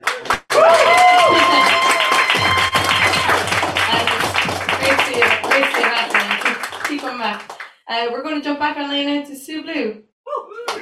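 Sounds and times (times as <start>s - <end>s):
crowd whooping and cheering: 0.0s - 7.3s, 10.3s - 10.8s
audience applause: 0.0s - 7.7s, 10.7s - 10.8s
speech: 8.5s - 10.0s.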